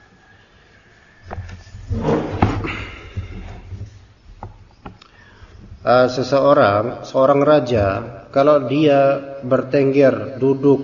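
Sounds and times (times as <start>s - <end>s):
door being closed: 1.3s - 4.6s
speech: 5.9s - 10.8s.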